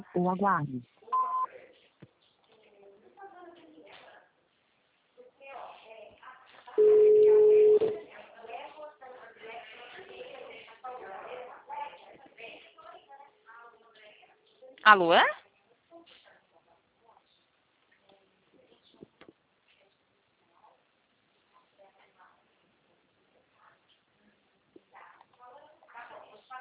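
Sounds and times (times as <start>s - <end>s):
speech: 0.2s - 1.0s, 14.8s - 15.4s
telephone system signal beep: 1.2s - 1.5s, 6.8s - 8.0s.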